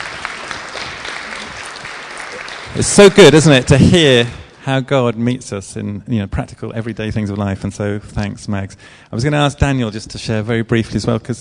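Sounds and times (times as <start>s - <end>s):
audience applause: 0.0s - 4.6s
speech: 2.8s - 11.3s.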